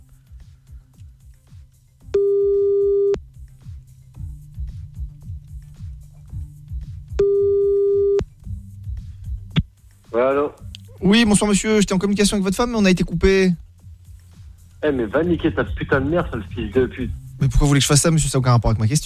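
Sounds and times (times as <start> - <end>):
telephone line tone while calling a number back: 2.2 - 3.2, 7.2 - 8.2
speech: 11.1 - 13.6, 14.8 - 19.0.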